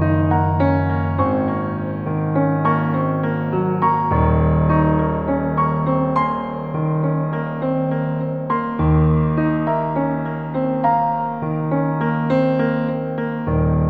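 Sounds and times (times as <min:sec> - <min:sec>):
sad piano music: 0:00.0 - 0:13.8.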